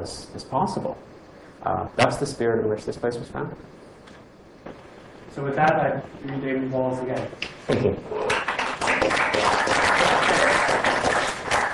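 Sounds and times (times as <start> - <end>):
speech: 0.0 - 3.8, 5.3 - 8.4
audience applause: 8.3 - 11.7.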